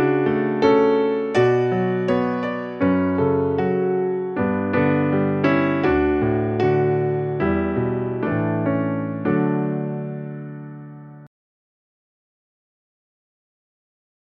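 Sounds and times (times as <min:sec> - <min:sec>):
piano song: 0:00.0 - 0:11.3.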